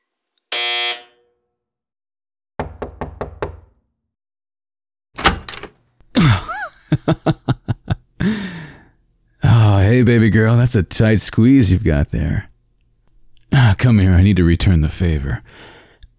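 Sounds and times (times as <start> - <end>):
door entry buzzer: 0.5 - 1.3, 5.2 - 5.7
quick knocks: 2.6 - 3.8
laughter: 6.2 - 8.1
speech: 7.1 - 7.6, 9.9 - 12.5, 13.8 - 15.8.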